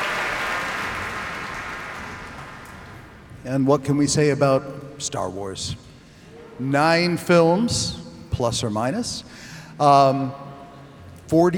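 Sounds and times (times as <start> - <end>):
concert audience applause: 0.0 - 3.3
speech: 3.4 - 5.9, 6.6 - 10.5, 11.3 - 11.5.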